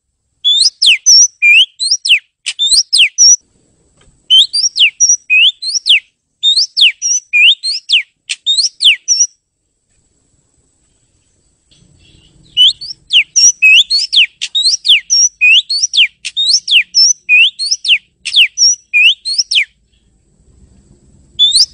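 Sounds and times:
bird whistling bright pure notes: 0.4 - 3.4, 4.3 - 9.4, 12.0 - 19.8, 21.4 - 21.7.

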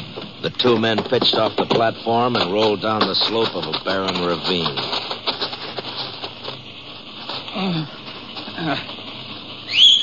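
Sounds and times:
speech: 0.6 - 5.0, 8.6 - 8.9
person whistling to call horses: 9.7 - 10.0.

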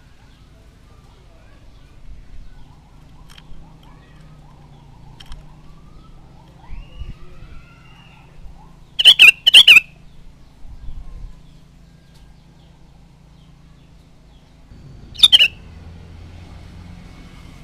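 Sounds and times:
sooty-headed bulbul chattering: 8.9 - 10.1, 15.1 - 15.6.

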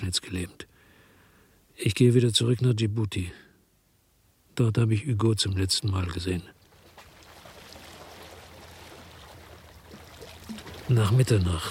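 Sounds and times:
speech: 0.0 - 0.7, 1.8 - 3.4, 4.6 - 6.6, 10.9 - 11.6
rowing a boat on water at Les Goudes: 6.6 - 11.6.

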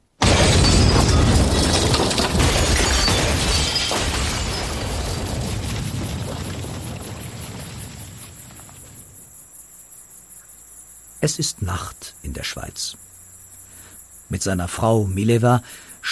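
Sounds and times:
explosion bang: 0.2 - 8.9
speech: 11.2 - 13.1, 14.3 - 16.1.

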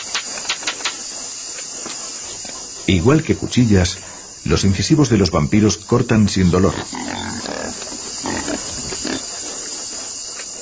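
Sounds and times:
speech: 2.9 - 7.4
pig grunting: 6.4 - 9.5.

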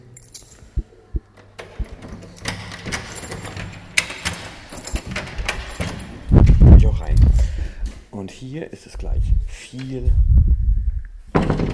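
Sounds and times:
keys jangling while searching for right key: 0.0 - 0.8, 1.6 - 7.6
speech: 8.4 - 10.6.

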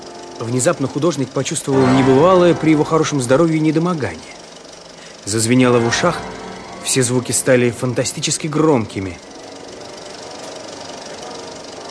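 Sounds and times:
film projector whirring: 0.0 - 1.7, 3.7 - 5.4, 8.0 - 11.8
speech: 0.4 - 4.4, 5.3 - 9.4.

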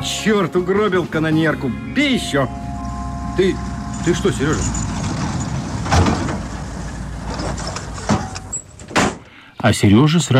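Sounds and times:
speech: 0.0 - 2.7, 3.4 - 4.9, 9.6 - 10.3
GAZ jeep brakes squealing on a road: 0.0 - 9.0
camp GAZ jeep engine rumbling: 0.0 - 9.3
dull clunks of a braking jeep: 4.5 - 9.4.

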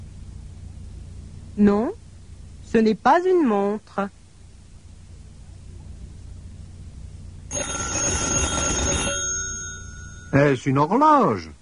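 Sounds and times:
speech: 1.6 - 2.0, 2.7 - 4.2, 10.4 - 11.5
telephone bell ringing: 7.5 - 10.6.

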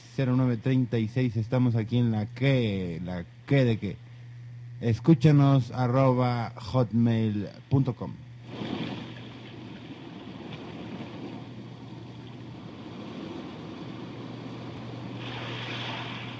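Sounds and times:
speech: 0.2 - 4.1, 4.8 - 8.7
sea waves: 8.4 - 16.3.

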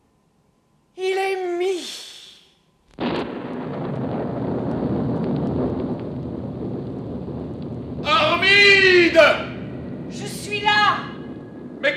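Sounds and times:
storm wind effect: 3.0 - 11.9
thunder effect: 3.0 - 11.9.

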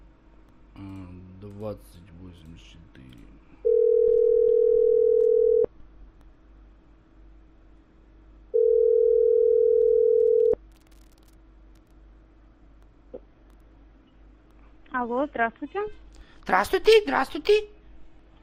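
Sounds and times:
speech: 0.8 - 3.6, 15.0 - 17.8
telephone ringback beeps during a call to a loan service: 3.7 - 5.7, 8.6 - 10.6.

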